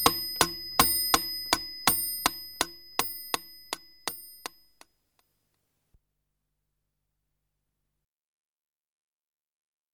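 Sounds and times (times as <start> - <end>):
pendulum clock: 0.0 - 4.9.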